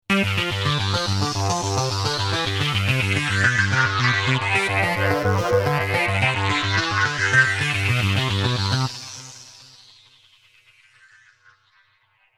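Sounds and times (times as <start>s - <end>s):
synth sweep: 0.2s - 9.7s.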